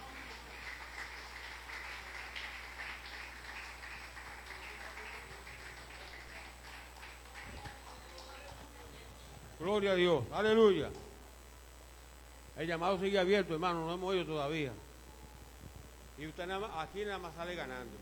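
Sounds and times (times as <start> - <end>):
audience applauding: 0.0 - 8.8
speech: 9.6 - 11.0, 12.6 - 14.8, 16.2 - 17.9.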